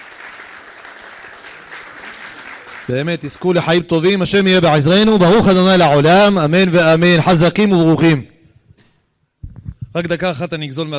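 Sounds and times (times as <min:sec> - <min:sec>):
audience applauding a rabbi: 0:00.0 - 0:03.9
speech: 0:02.9 - 0:08.3, 0:10.0 - 0:10.9.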